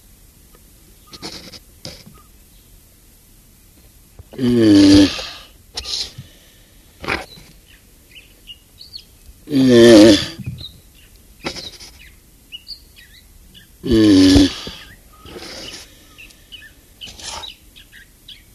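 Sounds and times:
small birds chirping: 0.9s - 2.8s, 7.0s - 18.5s
Galapagos tortoise groaning: 4.3s - 6.4s, 7.0s - 7.4s, 9.4s - 10.6s, 11.4s - 12.1s, 13.8s - 17.7s.

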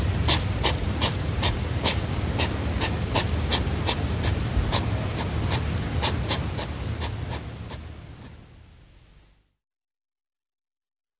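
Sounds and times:
European hedgehog sniffing and huffing in hissy puffs: 0.0s - 8.4s.

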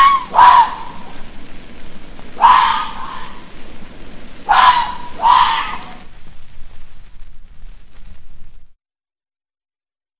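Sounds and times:
red fox screaming: 0.0s - 1.3s, 2.3s - 3.5s, 4.4s - 6.1s.

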